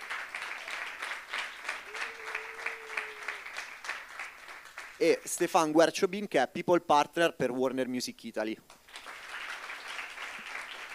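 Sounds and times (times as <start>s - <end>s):
audience applause: 0.0s - 5.0s, 8.9s - 10.9s
speech: 5.0s - 8.8s.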